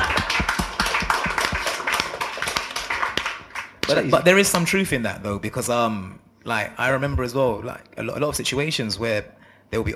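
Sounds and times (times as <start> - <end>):
clapping: 0.0 - 4.0
speech: 3.9 - 9.9.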